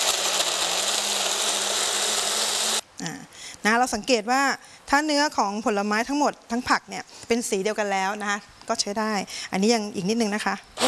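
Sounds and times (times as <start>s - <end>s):
blender blending fruit and vegetables: 0.0s - 2.8s
speech: 3.6s - 10.8s.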